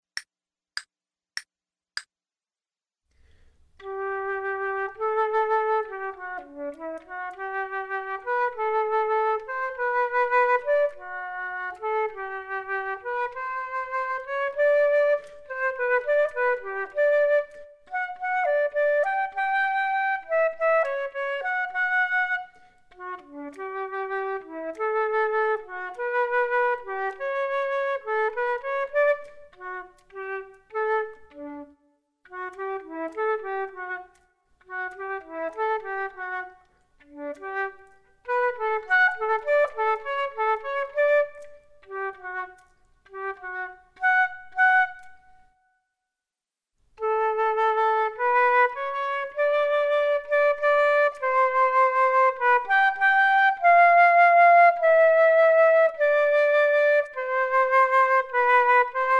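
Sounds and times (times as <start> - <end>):
flute duet: 3.2 - 45.9, 47.0 - 59.1.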